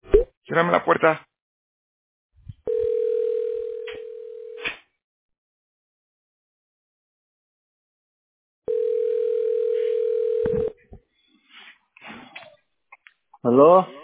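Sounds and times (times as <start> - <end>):
speech: 0.5 - 1.3, 13.4 - 14.0
telephone line tone after a dropped call: 2.7 - 4.6, 8.7 - 10.8.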